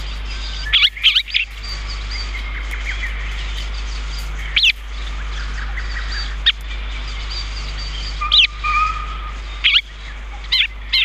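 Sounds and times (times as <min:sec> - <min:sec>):
chestnut-cheeked starling squeaky chirps: 0:00.0 - 0:11.0
low steady hum: 0:00.0 - 0:11.0.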